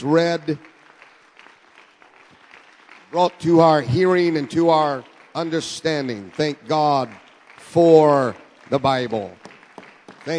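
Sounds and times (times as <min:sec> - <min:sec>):
speech: 0:00.0 - 0:00.7, 0:03.1 - 0:09.4
audience hand clapping: 0:00.0 - 0:10.3.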